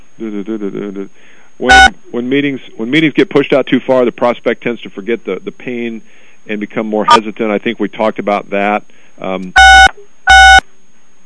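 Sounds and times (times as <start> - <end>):
speech: 0.2 - 10.1
electronic beeps from pressed phone keys: 9.6 - 10.6.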